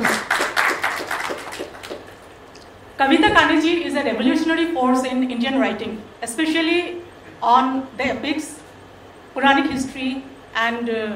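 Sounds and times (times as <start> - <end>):
audience applause: 0.0 - 2.2
speech: 3.0 - 8.6, 9.4 - 11.1.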